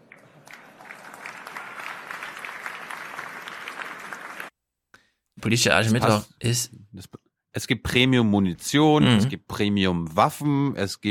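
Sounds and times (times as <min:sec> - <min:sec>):
audience applause at a political speech: 0:00.0 - 0:04.5
speech: 0:05.4 - 0:11.0.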